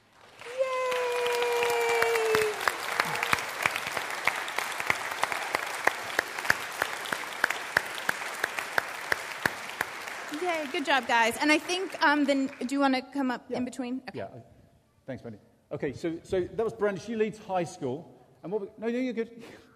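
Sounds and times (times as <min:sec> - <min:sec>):
audience applause: 0:00.0 - 0:12.8
speech: 0:10.6 - 0:14.5, 0:15.1 - 0:19.6.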